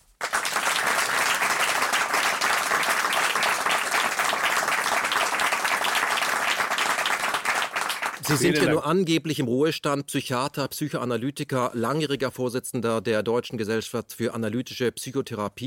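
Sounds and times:
crowd applause: 0:00.1 - 0:08.8
speech: 0:08.3 - 0:15.6.

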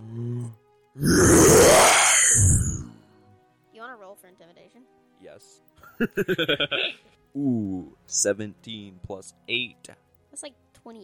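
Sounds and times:
person imitating a beast's bellow with a gravelly roar: 0:00.0 - 0:02.9
speech: 0:04.3 - 0:11.0
laughter: 0:06.0 - 0:07.0.

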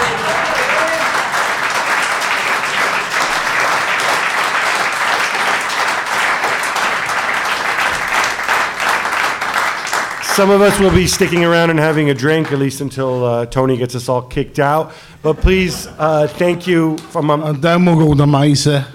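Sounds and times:
slow handclap from audience: 0:00.0 - 0:12.7
speech: 0:10.4 - 0:18.9.

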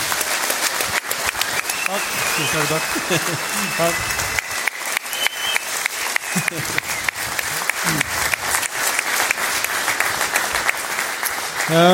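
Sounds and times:
audience applause: 0:00.0 - 0:11.9
person speaking and laughing: 0:01.9 - 0:04.0, 0:06.4 - 0:06.8, 0:07.8 - 0:08.1
speech: 0:01.9 - 0:04.2, 0:06.5 - 0:06.8, 0:11.7 - 0:11.9.

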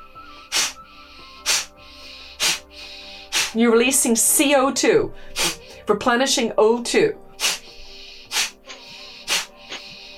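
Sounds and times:
sharp forceful exhalations through the nose in a breathing exercise: 0:00.3 - 0:03.6, 0:05.3 - 0:05.8, 0:07.4 - 0:10.1
speech: 0:03.5 - 0:07.2.

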